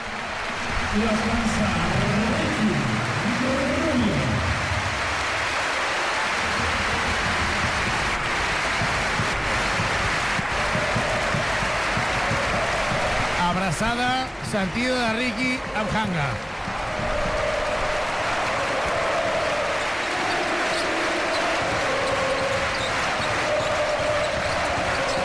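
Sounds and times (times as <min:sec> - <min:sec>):
arena crowd ovation: 0:00.0 - 0:25.2
speech: 0:01.0 - 0:02.0, 0:13.6 - 0:16.5.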